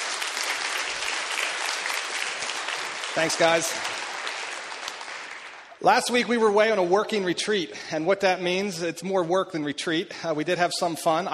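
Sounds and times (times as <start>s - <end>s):
crowd clapping: 0.0s - 7.2s
speech: 3.2s - 4.0s, 5.8s - 11.3s.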